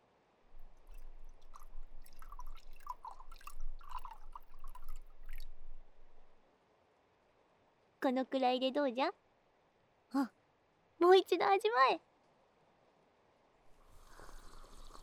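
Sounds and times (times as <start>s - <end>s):
tea pouring into a teacup: 0.6s - 6.3s, 13.7s - 15.0s
speech: 8.0s - 9.2s, 10.1s - 10.4s, 11.1s - 12.1s.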